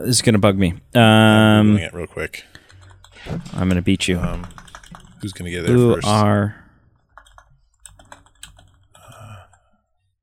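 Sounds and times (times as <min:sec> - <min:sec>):
speech: 0:00.0 - 0:02.6, 0:03.2 - 0:04.6, 0:05.2 - 0:06.6
typing on a computer keyboard: 0:02.5 - 0:05.9, 0:07.0 - 0:09.6.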